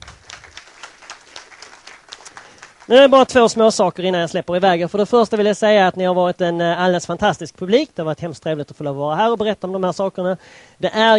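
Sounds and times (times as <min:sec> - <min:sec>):
audience applause for a performer: 0:00.0 - 0:03.4
speech: 0:02.9 - 0:11.1.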